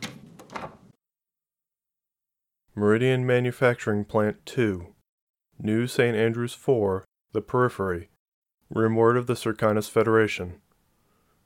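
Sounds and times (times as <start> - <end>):
door being quietly closed: 0.0 - 1.0
speech: 2.8 - 5.0, 5.6 - 8.1, 8.7 - 10.6.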